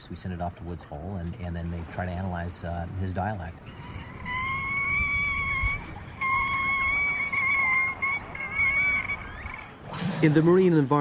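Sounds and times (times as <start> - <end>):
speech: 0.0 - 3.9, 10.2 - 10.9
killer whale vocalizations: 3.2 - 10.7.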